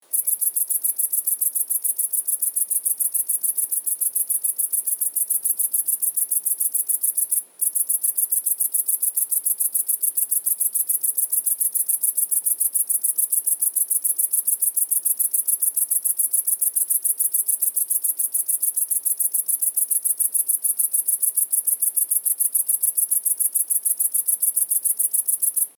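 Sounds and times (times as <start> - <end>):
grasshopper chirping: 0.1 - 25.7.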